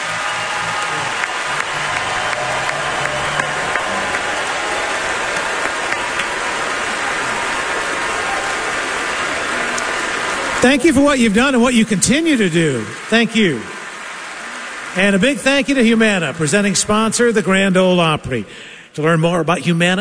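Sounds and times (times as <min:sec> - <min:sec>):
audience applause: 0:00.0 - 0:17.7
speech: 0:10.6 - 0:13.8, 0:15.0 - 0:19.9.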